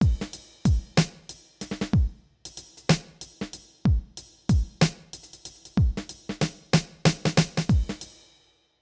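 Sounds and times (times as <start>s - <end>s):
music beat: 0.0s - 8.1s.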